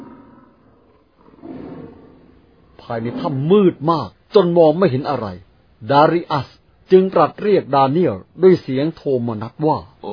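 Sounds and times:
lion roaring: 0:00.0 - 0:03.5
speech: 0:02.8 - 0:10.1.

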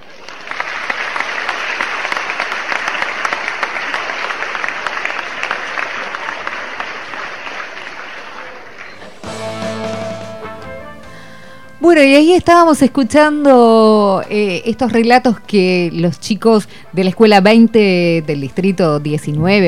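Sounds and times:
crowd applause for a staged scene in a radio story: 0:00.0 - 0:11.3
speech: 0:11.9 - 0:19.6.

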